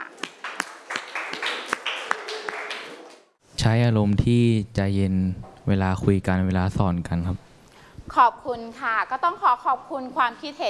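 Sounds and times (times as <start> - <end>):
scattered applause: 0.0 - 3.4
students clapping in rhythm: 0.0 - 3.4
speech: 3.6 - 7.4, 8.1 - 10.6.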